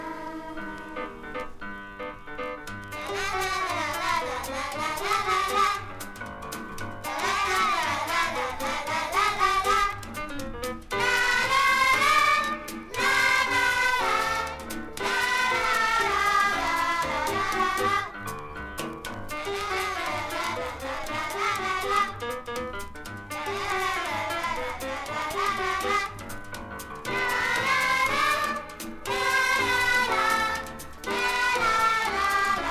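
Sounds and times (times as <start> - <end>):
twelve-bar blues music: 0.1 - 32.6.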